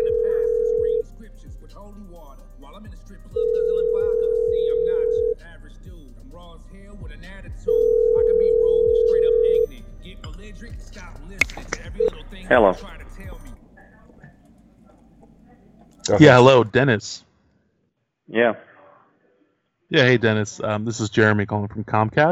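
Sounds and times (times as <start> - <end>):
ringback tone of an outgoing phone call: 0.0 - 1.0, 3.4 - 5.4, 7.7 - 9.7, 11.9 - 12.2
speech: 12.5 - 13.0, 16.1 - 17.3, 18.3 - 18.7, 19.9 - 22.3.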